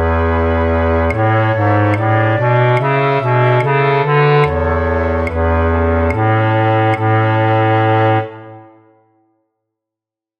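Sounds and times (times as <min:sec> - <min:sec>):
flute orchestra with contrabass flute playing a practice track: 0:00.0 - 0:09.0.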